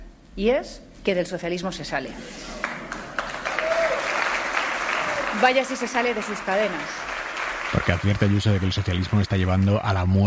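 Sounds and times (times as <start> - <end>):
speech: 0.4 - 2.7, 5.4 - 7.1, 7.7 - 10.2
audience applause after a speech at a private university in Mexico: 2.5 - 10.2.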